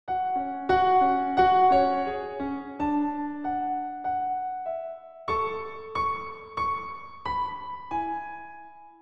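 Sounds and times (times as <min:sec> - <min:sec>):
piano: 0:00.1 - 0:09.0.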